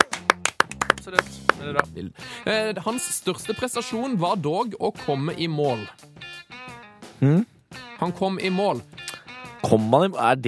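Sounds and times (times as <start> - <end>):
hosts clapping for a slalom winner: 0.0 - 1.9
speech: 1.1 - 6.1, 7.2 - 9.0, 9.7 - 10.4.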